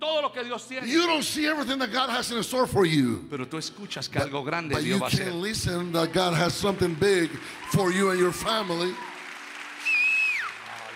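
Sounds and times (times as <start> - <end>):
speech: 0.3 - 9.1
audience applause: 5.2 - 10.9
high whistle: 9.8 - 10.7.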